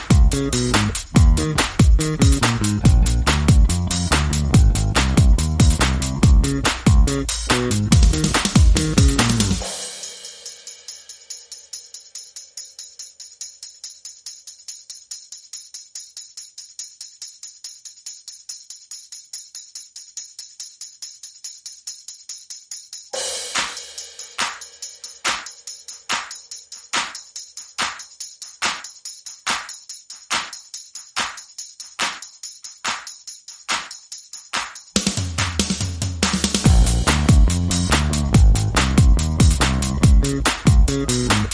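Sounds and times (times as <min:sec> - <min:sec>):
bass: 0:00.0 - 0:09.7, 0:35.0 - 0:41.5
drums: 0:00.0 - 0:11.1, 0:23.1 - 0:25.5, 0:34.6 - 0:41.5.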